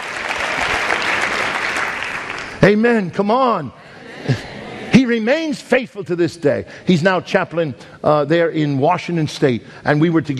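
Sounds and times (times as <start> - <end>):
congregation applauding: 0.0 - 2.8
speech: 2.6 - 4.5, 5.1 - 10.3
laughter: 3.8 - 5.3.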